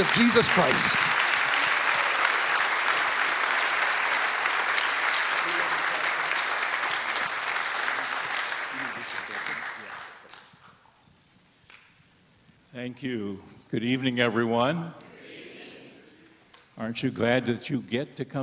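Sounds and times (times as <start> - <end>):
speech: 0.0 - 1.2, 13.0 - 15.0, 16.8 - 18.4
People's Church congregation clapping to welcome the pastor: 0.0 - 10.8.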